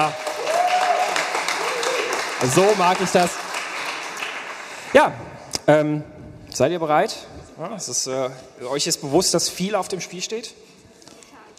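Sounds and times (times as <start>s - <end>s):
speech: 0.0s - 0.2s, 2.4s - 3.4s, 4.9s - 10.7s
audience applause: 0.0s - 5.1s.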